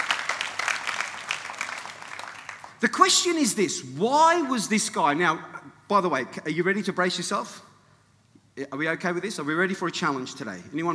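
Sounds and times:
church congregation clapping: 0.0 - 2.8
speech: 2.8 - 7.7, 8.6 - 10.9.

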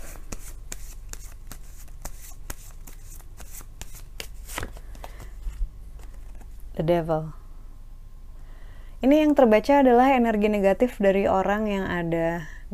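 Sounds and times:
advice cards being shuffled: 0.0 - 6.6
speech: 6.8 - 7.4, 9.0 - 12.5.

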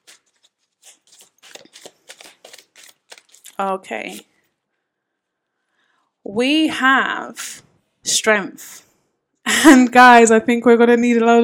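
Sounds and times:
goddess guidance oracle cards shuffling: 0.0 - 4.6
speech: 3.6 - 4.3, 6.3 - 7.6, 8.2 - 8.7, 9.6 - 11.4.

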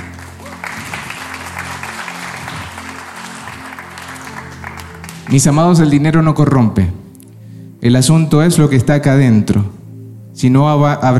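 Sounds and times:
audience applause: 0.0 - 5.6
speech: 5.3 - 7.0, 7.8 - 9.8, 10.4 - 11.1.

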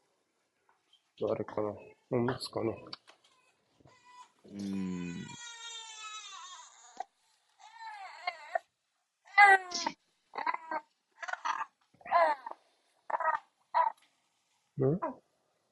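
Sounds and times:
speech: 1.2 - 3.0, 4.5 - 5.3
baby crying: 3.4 - 8.7, 9.3 - 14.0.

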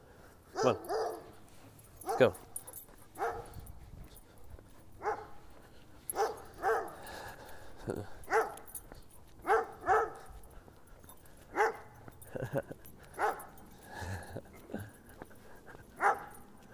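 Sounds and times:
dog barking: 0.5 - 1.4, 2.0 - 2.5, 3.2 - 3.6, 5.0 - 5.4, 6.1 - 7.0, 8.2 - 8.8, 9.4 - 10.4, 11.5 - 12.0, 13.2 - 13.5, 16.0 - 16.4
speech: 0.6 - 0.9, 2.2 - 2.5.

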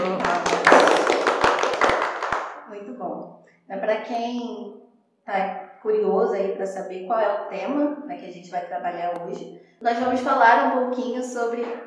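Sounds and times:
small group applauding: 0.0 - 2.7
speech: 4.0 - 11.8.

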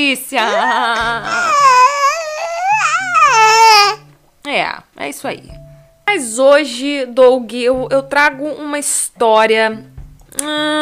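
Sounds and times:
speech: 0.0 - 1.8, 4.4 - 10.8
child screaming and wailing: 0.5 - 4.0.

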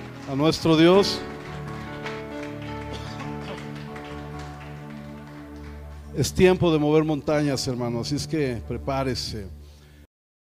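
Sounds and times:
audience applause: 0.0 - 6.6
speech: 0.3 - 1.3, 6.2 - 9.6.

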